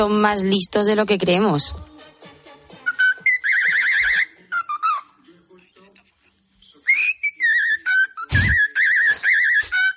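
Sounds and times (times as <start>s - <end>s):
speech: 0.0s - 1.9s
bird singing a whistled cartoon theme tune: 2.8s - 5.1s, 6.8s - 9.9s.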